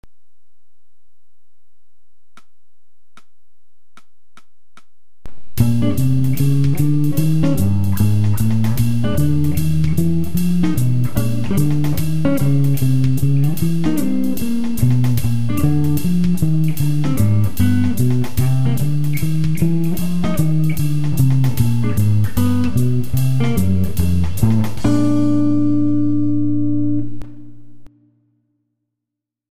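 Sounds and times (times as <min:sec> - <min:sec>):
walking bass line: 0:05.3 - 0:27.9.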